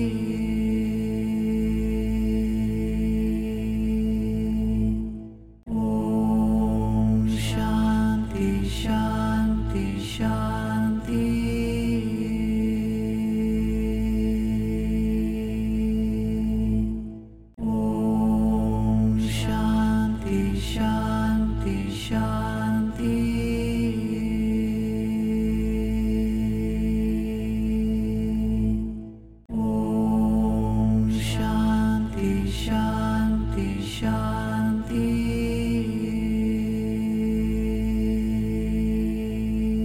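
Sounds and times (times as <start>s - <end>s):
person chanting: 0.0s - 5.0s, 5.7s - 17.0s, 17.6s - 28.9s, 29.5s - 39.8s.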